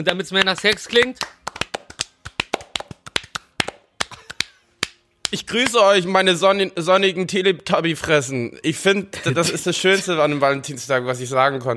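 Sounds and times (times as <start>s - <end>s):
speech: 0.0s - 1.4s, 5.3s - 11.7s
hand clapping: 0.3s - 5.8s.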